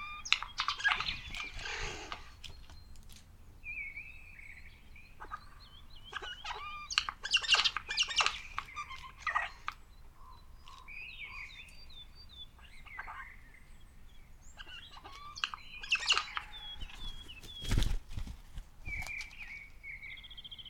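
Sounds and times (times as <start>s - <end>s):
Pica pica: 0.0s - 2.6s, 5.2s - 11.8s, 14.6s - 18.0s.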